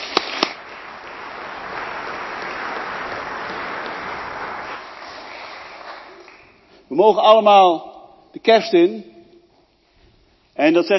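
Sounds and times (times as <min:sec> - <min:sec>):
church audience clapping: 0:00.0 - 0:06.8
speech: 0:06.9 - 0:09.1, 0:10.6 - 0:10.9.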